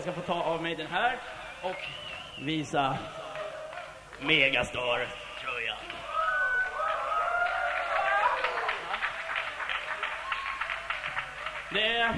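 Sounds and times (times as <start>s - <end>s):
speech: 0.0s - 3.2s, 4.2s - 6.0s, 11.7s - 12.1s
audience applause at a concert: 3.2s - 12.1s.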